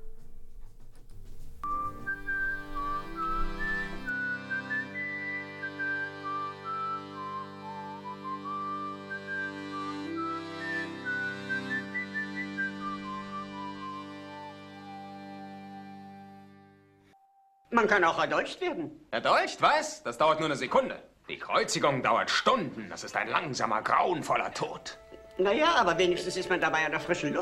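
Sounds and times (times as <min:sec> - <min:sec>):
film soundtrack song playing: 0:00.0 - 0:17.8, 0:23.9 - 0:27.3
speech: 0:17.8 - 0:27.3.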